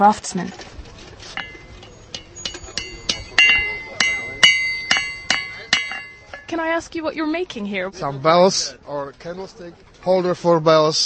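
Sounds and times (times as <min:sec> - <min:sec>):
speech: 0:00.0 - 0:00.6, 0:06.5 - 0:11.0
blacksmith's hammer striking metal over a fire: 0:01.3 - 0:06.6.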